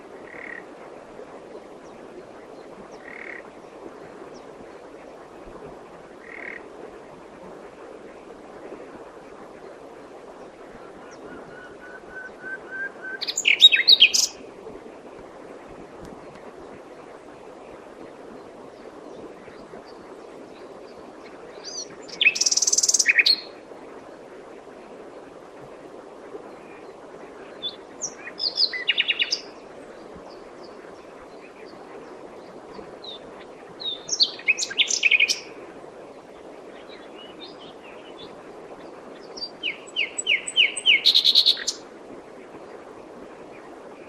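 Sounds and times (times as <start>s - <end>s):
common nightingale song: 11.0s - 14.4s, 21.6s - 23.5s, 27.6s - 29.5s, 33.8s - 35.5s, 39.2s - 41.8s.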